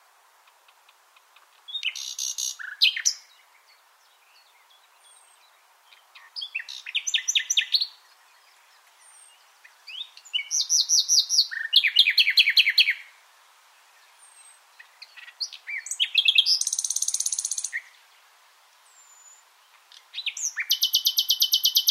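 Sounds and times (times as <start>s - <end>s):
common nightingale singing whistles and trills: 1.7s - 3.6s, 4.3s - 13.1s, 14.2s - 18.0s, 20.0s - 21.8s.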